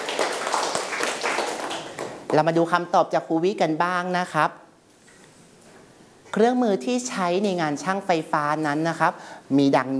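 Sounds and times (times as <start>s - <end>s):
children clapping for a classmate: 0.0s - 2.4s
speech: 2.3s - 4.6s, 6.3s - 9.9s.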